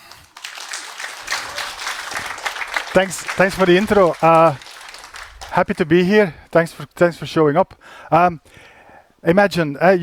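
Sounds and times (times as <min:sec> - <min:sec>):
crowd applause greeting a speaker for a talk on generative art: 0:00.0 - 0:06.0
speech: 0:02.9 - 0:04.6, 0:05.6 - 0:10.0.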